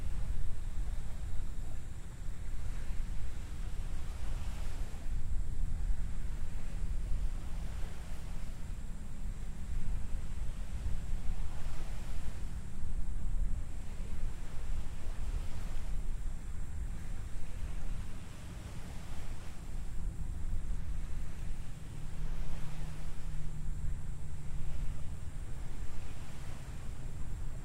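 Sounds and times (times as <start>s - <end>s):
faint low hum: 0.0s - 27.6s
steady heavy rush of wind: 0.0s - 27.6s
water washing against the shore at Naval Live Oaks Nature Preserve, Florida: 0.0s - 27.6s.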